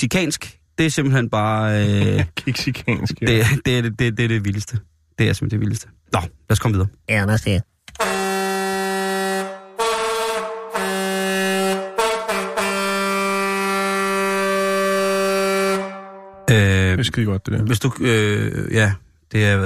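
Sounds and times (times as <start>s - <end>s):
speech: 0.0s - 8.1s, 17.0s - 19.6s
laughter: 1.8s - 3.6s
loud brassy comic horn blasts: 8.0s - 16.8s.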